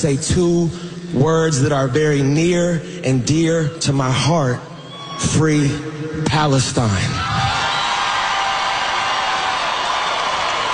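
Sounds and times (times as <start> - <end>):
speech: 0.0 - 7.5
crowd cheering and roaring: 7.1 - 10.7.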